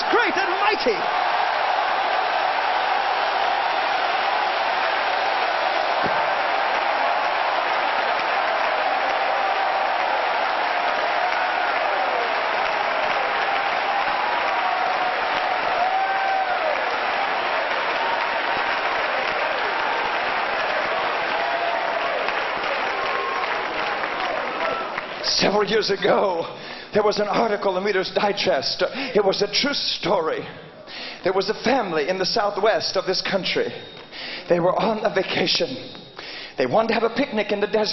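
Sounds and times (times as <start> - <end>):
audience clapping: 0.0 - 25.6
speech: 0.8 - 1.2, 25.6 - 30.6, 31.2 - 36.0, 36.6 - 37.9.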